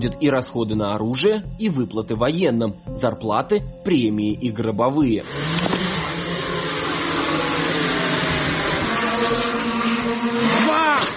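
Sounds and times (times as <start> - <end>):
speech: 0.0 - 5.8
drone launching motor whine: 5.2 - 11.1.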